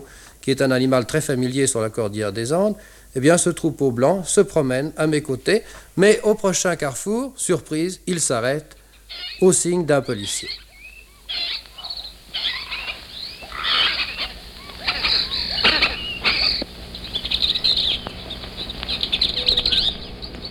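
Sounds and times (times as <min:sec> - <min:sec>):
speech: 0:00.1 - 0:10.6
tame parakeets calling in the street: 0:08.0 - 0:20.4.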